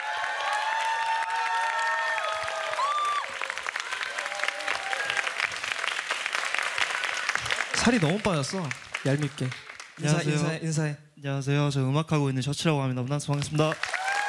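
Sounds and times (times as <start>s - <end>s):
audience high shouts and whoops: 0.0s - 5.4s, 13.9s - 14.2s
concert audience cheering and applauding: 0.0s - 10.3s, 13.4s - 14.2s
speech: 7.8s - 13.9s.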